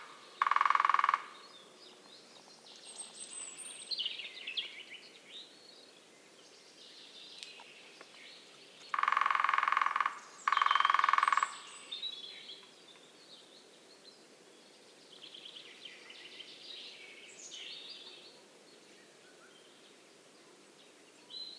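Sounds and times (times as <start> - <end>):
lesser spotted woodpecker drumming in Belgium: 0.0 - 1.4, 8.9 - 11.7.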